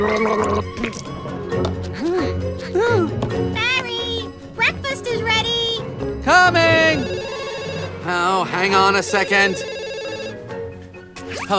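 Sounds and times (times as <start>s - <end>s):
person gargling mouthwash: 0.0s - 1.2s
speech: 0.0s - 1.9s, 8.1s - 9.8s
music: 0.0s - 11.5s.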